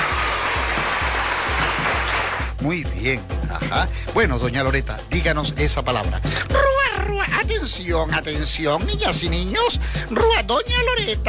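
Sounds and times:
applause on a children's show: 0.0s - 2.6s
speech: 2.6s - 11.2s.

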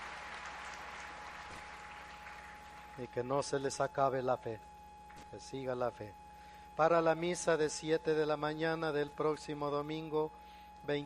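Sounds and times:
audience applause: 0.0s - 3.2s
speech: 3.0s - 6.2s, 6.8s - 11.0s.

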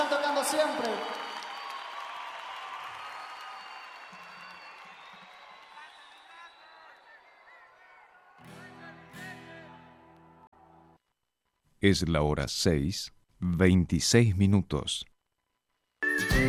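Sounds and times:
audience applause for a band: 0.0s - 9.9s
speech: 0.5s - 1.2s, 11.8s - 15.1s.

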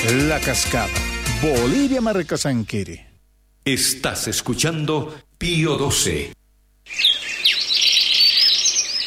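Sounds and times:
speech: 0.1s - 7.2s
swallow calling: 6.9s - 9.0s.

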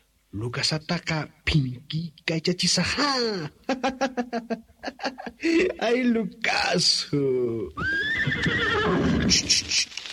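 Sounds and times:
speech: 0.3s - 10.1s
laughter: 2.9s - 5.8s
horse neighing: 7.8s - 9.7s.

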